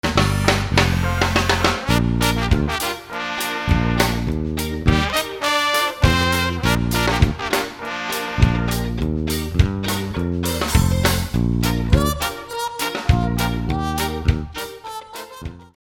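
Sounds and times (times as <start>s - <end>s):
world beat music: 0.0s - 15.8s.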